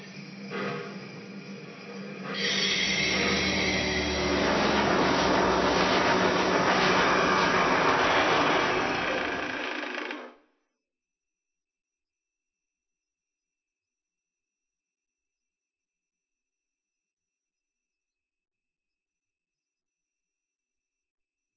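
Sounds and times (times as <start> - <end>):
steam locomotive pulling away: 0.0 - 9.6.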